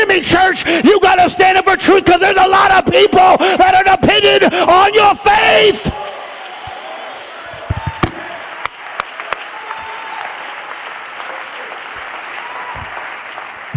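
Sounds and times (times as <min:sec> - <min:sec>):
speech: 0:00.2 - 0:06.2
crowd applauding: 0:05.9 - 0:13.7.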